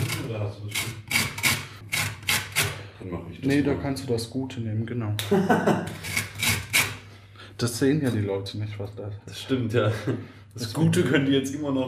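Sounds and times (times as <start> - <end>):
grating lime zest: 0.0 - 2.8, 6.0 - 7.0
speech: 0.4 - 1.0, 3.0 - 6.1, 7.6 - 11.8
laughter: 5.2 - 6.1, 9.8 - 10.4.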